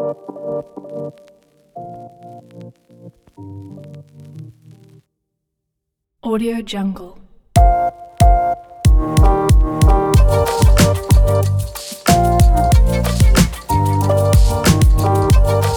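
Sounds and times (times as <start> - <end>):
modern hip hop drum kit: 7.6 - 15.7.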